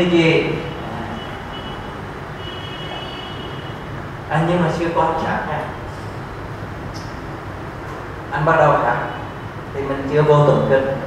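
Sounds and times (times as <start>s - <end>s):
speech: 0.0s - 0.7s, 4.3s - 5.8s, 8.3s - 11.0s
vehicles passing by outside: 0.0s - 11.0s.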